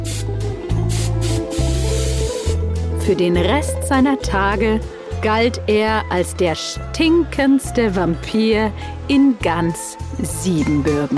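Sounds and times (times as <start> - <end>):
perfume being sprayed from a bottle: 0.0 - 2.6
speech: 3.1 - 11.1.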